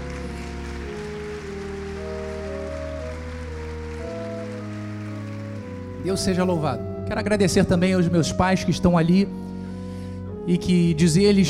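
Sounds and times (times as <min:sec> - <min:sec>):
audience applause: 0:00.0 - 0:06.7
sustained keyboard chords: 0:00.0 - 0:11.4
speech: 0:06.0 - 0:09.5, 0:10.4 - 0:11.4.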